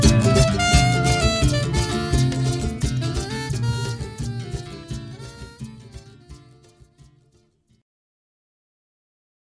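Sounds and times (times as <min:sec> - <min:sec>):
incidental music: 0:00.0 - 0:07.0.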